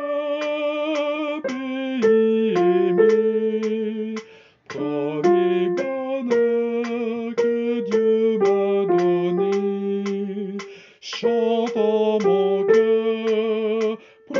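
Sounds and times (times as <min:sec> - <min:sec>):
soprano singing: 0:00.0 - 0:14.3.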